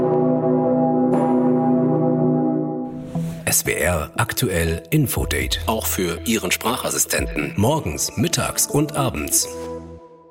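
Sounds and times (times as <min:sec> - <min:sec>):
huge church bell tolling on a deep C: 0:00.0 - 0:03.0
speech: 0:03.6 - 0:09.8.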